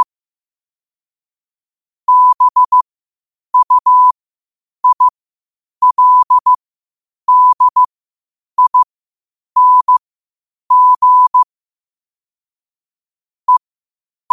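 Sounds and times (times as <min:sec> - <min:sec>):
morse code at 5 wpm: 0:02.1 - 0:02.8, 0:03.6 - 0:04.1, 0:04.8 - 0:05.1, 0:05.8 - 0:06.6, 0:07.3 - 0:07.9, 0:08.6 - 0:08.9, 0:09.6 - 0:10.0, 0:10.7 - 0:11.5.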